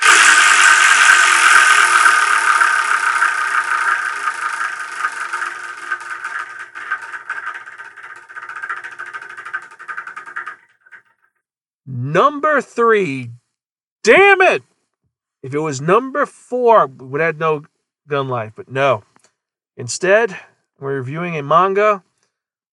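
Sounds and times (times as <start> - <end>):
spinning number wheel clicking: 0.0 - 11.1
speech: 12.2 - 13.4, 14.0 - 14.7, 15.4 - 19.1, 19.8 - 22.1.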